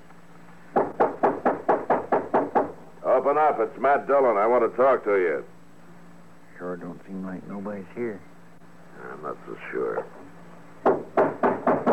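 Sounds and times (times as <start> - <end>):
firm knocking on a wooden door: 0.8 - 2.8, 10.8 - 11.9
speech: 3.3 - 5.6, 6.6 - 8.3, 9.0 - 10.1.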